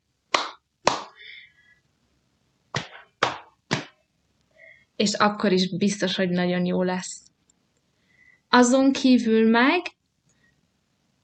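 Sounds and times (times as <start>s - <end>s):
hands clapping a rhythm: 0.3s - 1.3s, 2.7s - 4.0s
speech: 5.0s - 7.2s, 8.5s - 10.0s.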